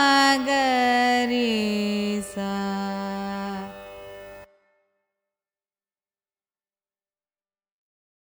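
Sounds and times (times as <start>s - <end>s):
carnatic music raga ascending and descending scale: 0.0s - 4.8s.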